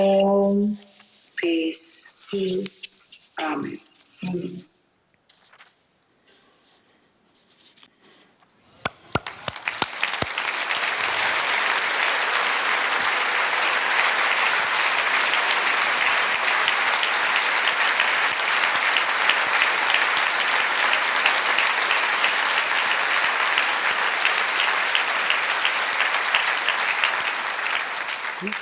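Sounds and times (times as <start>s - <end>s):
speech: 1.4s - 4.7s
audience applause: 8.8s - 28.6s.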